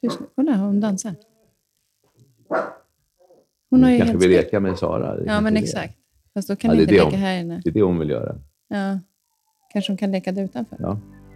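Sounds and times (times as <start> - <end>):
dog barking: 0.0 - 0.4, 2.5 - 3.5, 4.6 - 5.0
speech: 0.0 - 1.3, 2.5 - 2.8, 3.7 - 9.1, 9.7 - 11.2
dog yipping: 2.5 - 3.5, 4.7 - 4.9.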